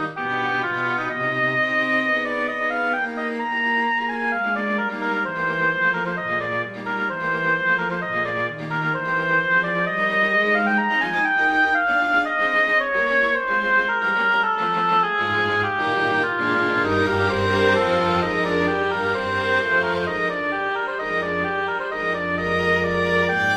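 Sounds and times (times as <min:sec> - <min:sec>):
oboe playing a presto arrangement: 0:00.0 - 0:23.5
strings playing a presto arrangement: 0:00.0 - 0:23.5.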